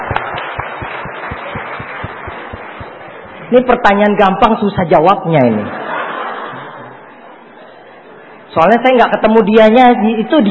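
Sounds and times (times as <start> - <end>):
audience applause: 0.0 - 3.5
speech: 3.5 - 5.8, 8.5 - 10.4
laughter: 5.6 - 7.4.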